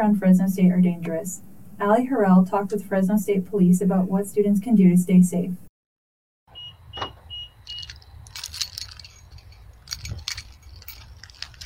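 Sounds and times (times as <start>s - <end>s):
speech: 0.0s - 5.7s
keys and small pepper spray canister jangling on a keychain: 7.6s - 11.6s.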